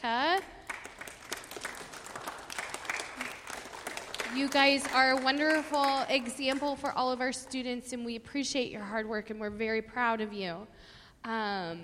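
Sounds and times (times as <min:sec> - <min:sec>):
audience applause: 0:00.7 - 0:06.7
speech: 0:04.4 - 0:11.8.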